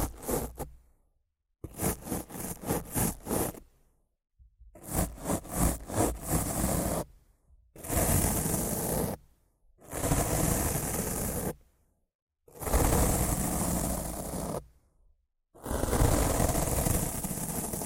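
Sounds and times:
rough scratching and brushing against a microphone: 0.0s - 0.8s, 1.6s - 3.7s, 4.8s - 7.1s, 7.8s - 9.2s, 9.9s - 11.6s, 12.6s - 14.7s, 15.7s - 17.8s.

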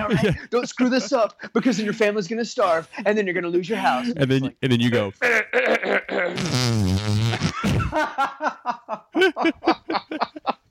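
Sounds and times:
speech: 0.1s - 7.2s, 7.9s - 10.6s
snickering laughter: 5.2s - 10.6s
hands squeezing out a fart imitation: 5.5s - 8.0s.

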